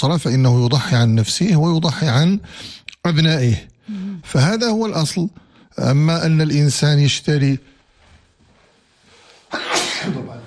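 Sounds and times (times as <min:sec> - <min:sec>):
speech: 0:00.0 - 0:07.7, 0:09.5 - 0:10.4
sneeze: 0:09.5 - 0:10.4.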